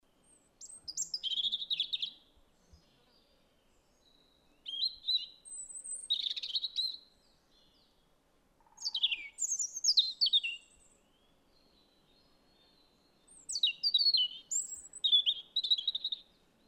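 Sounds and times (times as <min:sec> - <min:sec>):
robin singing: 0:00.2 - 0:08.0, 0:08.6 - 0:16.6.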